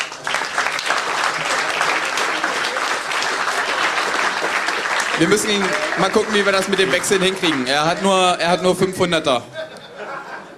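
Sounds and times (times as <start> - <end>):
audience applause: 0.0 - 8.4
speech: 5.2 - 9.5
laughter: 9.3 - 10.5.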